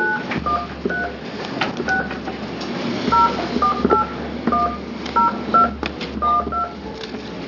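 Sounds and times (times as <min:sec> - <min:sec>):
telephone dialing tones: 0:00.0 - 0:01.2, 0:01.9 - 0:02.2, 0:03.1 - 0:06.8.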